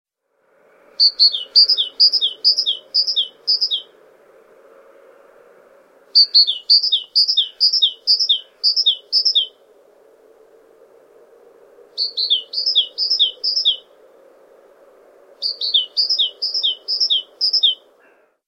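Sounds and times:
great tit singing: 0:01.0 - 0:03.9, 0:06.2 - 0:09.6, 0:12.0 - 0:13.9, 0:15.4 - 0:17.8.

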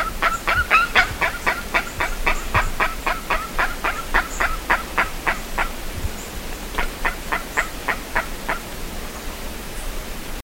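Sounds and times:
bird honking calls: 0:00.0 - 0:05.8, 0:06.7 - 0:08.7.

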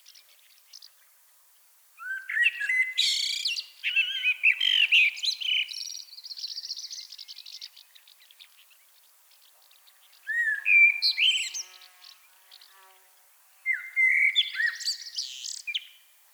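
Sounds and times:
common blackbird singing: 0:02.0 - 0:08.2, 0:10.2 - 0:11.8, 0:13.7 - 0:16.0.

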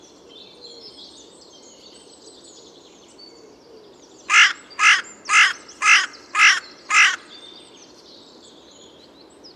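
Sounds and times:
Carrion crow Corvus corone cawing: 0:04.3 - 0:07.3.

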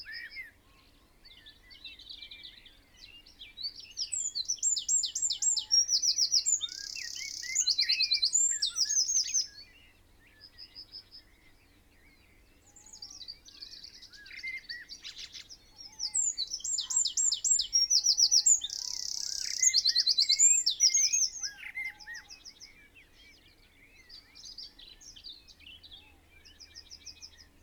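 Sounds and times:
faint other birds: 0:00.0 - 0:27.6
Eurasian wren singing: 0:03.8 - 0:09.6, 0:12.7 - 0:22.7.

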